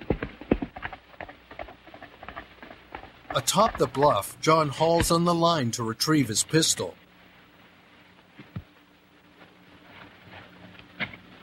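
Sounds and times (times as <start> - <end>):
hoofbeats of a mounted horse galloping away along a ravine: 0.0 - 5.2
speech: 3.4 - 7.0.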